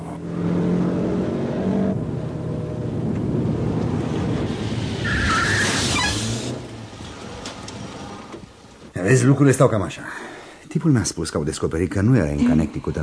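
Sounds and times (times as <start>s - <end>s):
car rumbling with road and wind noise: 0.0s - 9.0s
car tires squealing while braking: 4.0s - 9.0s
speech: 9.1s - 13.0s.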